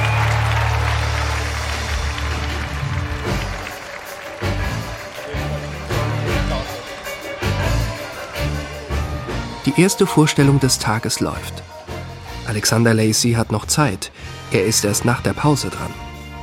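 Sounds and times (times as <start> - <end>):
audience applause for circus orchestra: 0.0 - 9.6
orchestral music with steady low brass tones: 0.1 - 16.4
speech: 9.7 - 11.7, 12.5 - 16.1.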